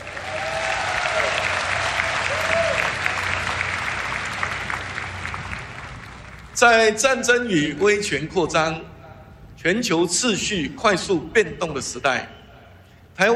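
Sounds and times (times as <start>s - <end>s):
applause: 0.0s - 6.6s
speech: 6.6s - 8.9s, 9.6s - 12.4s, 13.2s - 13.3s.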